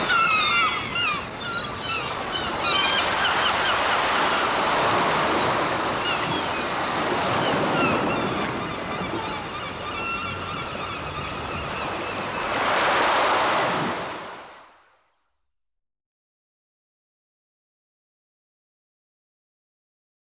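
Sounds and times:
seagulls calling at the seaside: 0.0 - 14.4.

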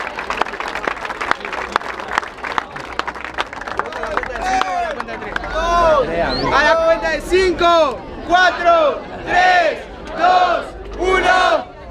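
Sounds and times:
crowd applause: 0.0 - 6.5
crowd cheering: 0.0 - 11.7
speech: 7.1 - 11.6.

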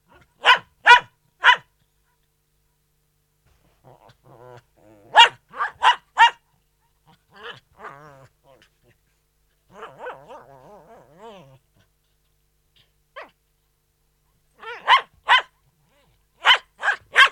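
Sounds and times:
poodle barking indoors: 0.1 - 1.7, 5.1 - 6.4, 9.8 - 10.4, 13.2 - 13.4, 14.6 - 15.6, 16.4 - 17.3.

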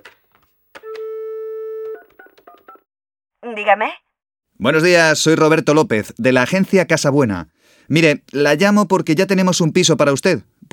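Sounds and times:
telephone ring tone: 0.8 - 2.8
speech: 3.4 - 4.0, 4.6 - 10.7.

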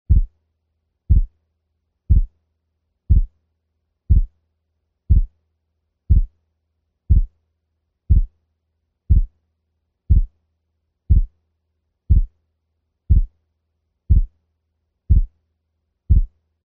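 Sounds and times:
heart sounds with a 0.04 second split: 0.1 - 0.3, 1.1 - 1.3, 2.1 - 2.3, 3.1 - 3.3, 4.1 - 4.3, 5.1 - 5.3, 6.1 - 6.3, 7.1 - 7.3, 8.1 - 8.3, 9.1 - 9.3, 10.1 - 10.3, 11.1 - 11.3, 12.1 - 12.3, 13.1 - 13.3, 14.1 - 14.3, 15.1 - 15.3, 16.1 - 16.3.

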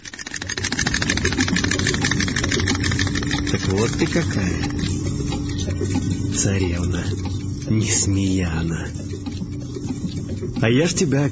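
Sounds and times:
magic stove engine starting at full speed: 0.0 - 11.2
speech: 3.5 - 4.9, 6.4 - 9.1, 10.6 - 11.2.

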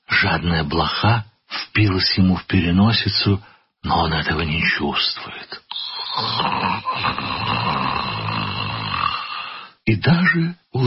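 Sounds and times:
speech: 0.2 - 7.7, 9.9 - 10.8
person snoring leaning against a wall: 5.7 - 9.8.

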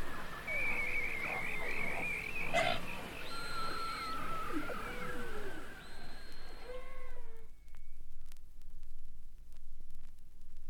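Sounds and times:
beluga whale whistles and trills: 0.0 - 8.1.

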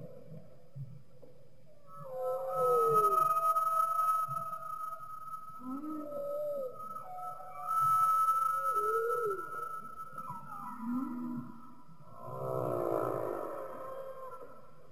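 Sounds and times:
humpback whale song: 1.7 - 14.8.

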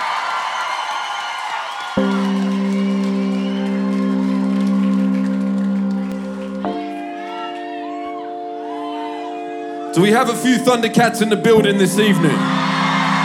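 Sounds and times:
live audience cheering and whooping: 0.0 - 9.9, 12.0 - 13.2
speech: 10.0 - 12.7.

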